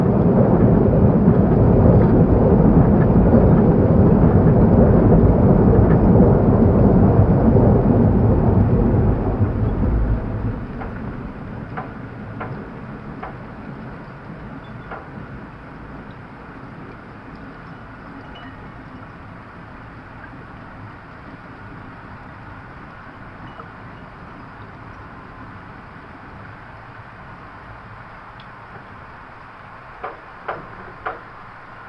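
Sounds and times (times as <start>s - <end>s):
Thames river in London: 0.0s - 31.8s
ghost knock: 30.0s - 31.2s.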